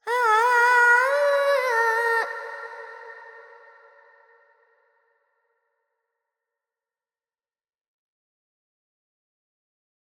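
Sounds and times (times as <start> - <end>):
Carnatic woman singing alaps in Phrygian mode: 0.0 - 3.9.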